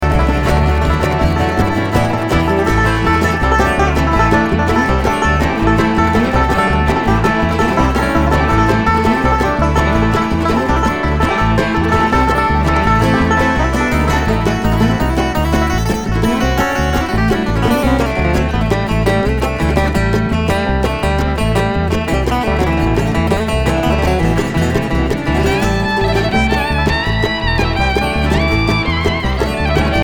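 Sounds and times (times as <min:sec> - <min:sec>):
traffic jam: 0:00.0 - 0:30.0.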